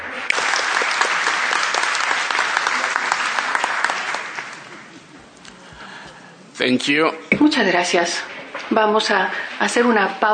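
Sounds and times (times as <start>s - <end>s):
audience applause: 0.0s - 5.8s
speech: 6.6s - 10.3s.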